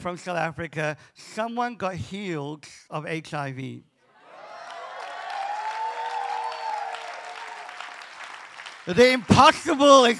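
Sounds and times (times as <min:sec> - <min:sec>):
speech: 0:00.0 - 0:03.9, 0:08.8 - 0:10.1
audience clapping: 0:04.4 - 0:10.1.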